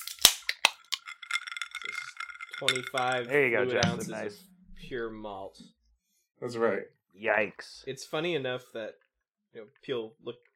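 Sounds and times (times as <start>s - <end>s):
cans being cracked open: 0.0s - 3.3s
speech: 2.6s - 5.8s, 6.4s - 10.5s.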